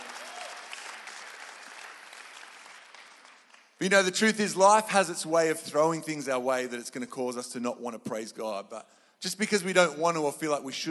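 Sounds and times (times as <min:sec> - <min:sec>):
crowd applauding: 0:00.0 - 0:03.8
speech: 0:03.8 - 0:10.8.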